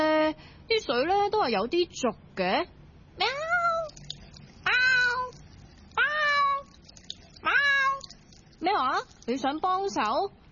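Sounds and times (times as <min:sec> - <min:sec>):
speech: 0:00.3 - 0:03.4, 0:08.6 - 0:10.4
cat meowing: 0:04.7 - 0:06.7, 0:07.4 - 0:08.2.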